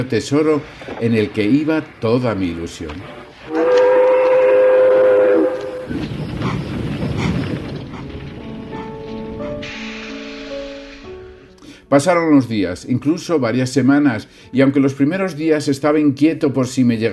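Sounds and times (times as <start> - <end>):
speech: 0.0 - 3.6, 11.9 - 17.1
rumble of moving train cars: 0.0 - 11.6
train whistle as a train departs from a station: 3.0 - 6.0, 9.6 - 11.2.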